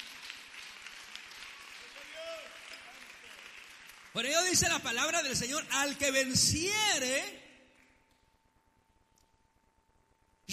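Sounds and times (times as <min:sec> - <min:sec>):
crowd applauding: 0:00.0 - 0:05.6
high cheer: 0:01.1 - 0:03.4
speech: 0:04.2 - 0:07.4.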